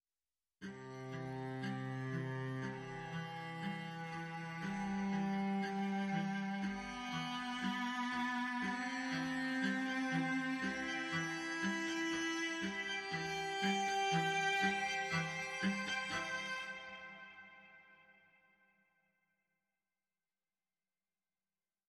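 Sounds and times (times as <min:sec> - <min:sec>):
cellos playing: 0:00.8 - 0:17.6.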